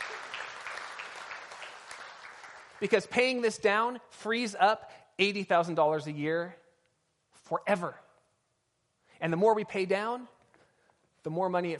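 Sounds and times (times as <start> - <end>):
audience clapping: 0.0 - 3.1
speech: 2.8 - 6.6, 7.5 - 8.0, 9.2 - 10.4, 11.2 - 11.7.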